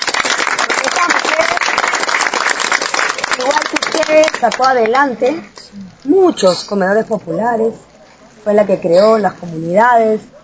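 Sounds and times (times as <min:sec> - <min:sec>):
audience applause: 0:00.0 - 0:04.7
speech: 0:04.1 - 0:10.4.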